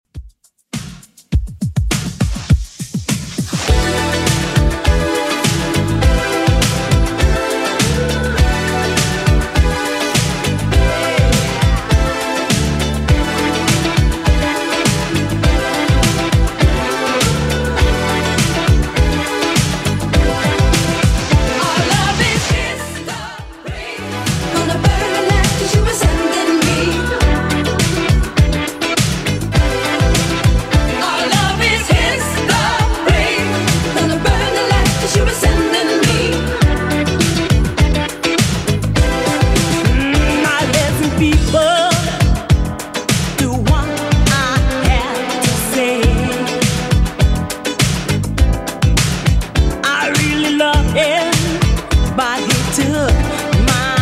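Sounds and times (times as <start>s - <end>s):
80s drum beat: 0.0s - 54.0s.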